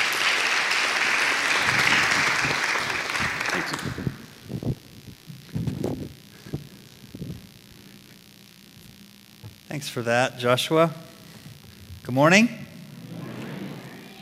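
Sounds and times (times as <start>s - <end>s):
church audience applause: 0.0s - 4.3s
speech: 9.8s - 11.0s, 12.1s - 12.6s.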